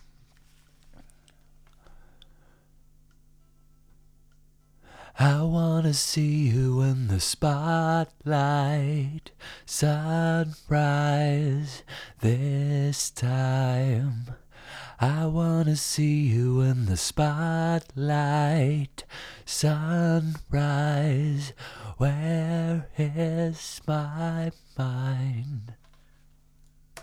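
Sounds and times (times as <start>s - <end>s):
person singing: 5.1s - 14.4s, 15.0s - 25.8s.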